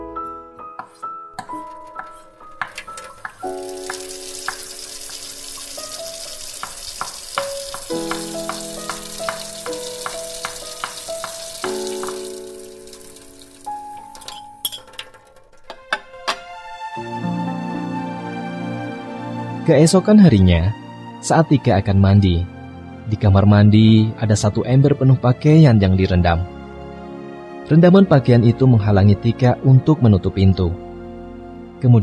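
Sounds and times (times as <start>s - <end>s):
melodic music: 0.0s - 15.0s, 16.0s - 20.4s
food frying in a pan: 2.7s - 14.4s
speech: 19.7s - 22.5s, 23.1s - 26.6s, 27.7s - 30.8s, 31.8s - 32.0s.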